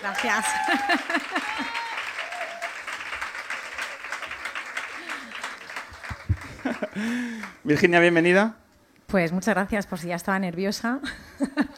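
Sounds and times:
speech: 0.0s - 1.9s, 6.8s - 11.7s
audience applause: 0.0s - 7.6s
laughter: 0.3s - 2.0s, 3.8s - 7.4s.

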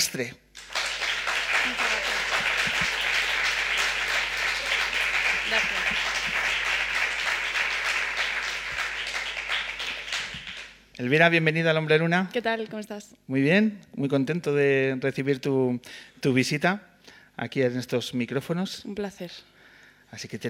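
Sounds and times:
speech: 0.0s - 0.4s, 11.0s - 19.5s, 20.1s - 20.4s
audience applause: 0.6s - 10.8s.

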